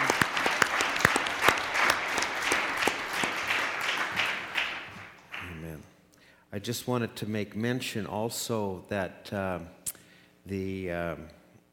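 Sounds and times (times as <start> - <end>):
church congregation applause welcoming visitors during a service: 0.0 - 5.7
speech: 6.6 - 9.8, 10.5 - 11.4.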